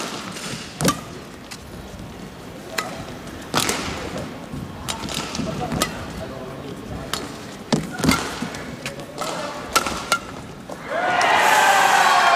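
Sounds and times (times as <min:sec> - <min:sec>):
badminton racket smashing a shuttlecock: 0:00.0 - 0:01.4, 0:02.7 - 0:04.2, 0:04.8 - 0:06.2, 0:07.0 - 0:10.6
crowd noise: 0:00.0 - 0:12.3
low hall murmur: 0:00.0 - 0:12.3.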